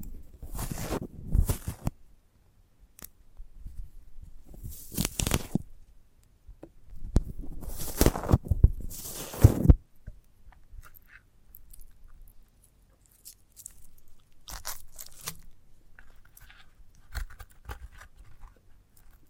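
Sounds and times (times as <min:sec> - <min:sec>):
sprouted coconut scraping crunches: 0:00.5 - 0:01.9, 0:07.4 - 0:09.7, 0:13.0 - 0:19.2.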